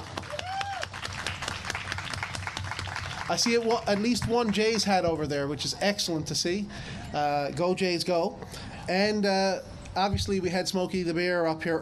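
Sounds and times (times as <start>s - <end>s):
round of applause: 0.0s - 4.9s
speech: 3.3s - 11.8s.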